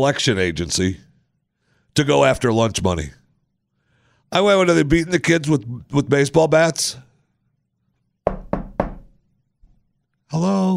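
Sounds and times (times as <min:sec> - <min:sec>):
speech: 0:00.0 - 0:01.0, 0:02.0 - 0:03.2, 0:04.3 - 0:07.1, 0:10.3 - 0:10.7
knocking on a door: 0:08.3 - 0:09.2.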